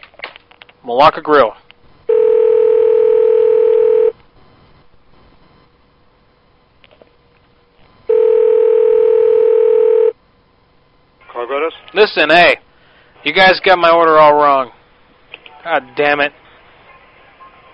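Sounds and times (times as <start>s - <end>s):
speech: 0.8s - 1.6s, 12.0s - 12.6s, 13.2s - 14.8s, 15.6s - 16.4s
telephone ringback tone: 2.1s - 4.2s, 8.1s - 10.2s.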